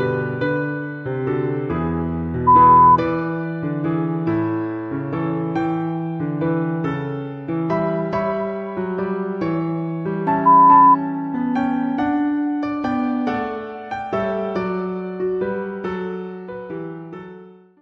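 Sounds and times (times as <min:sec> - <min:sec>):
classical piano music: 0:00.0 - 0:17.8.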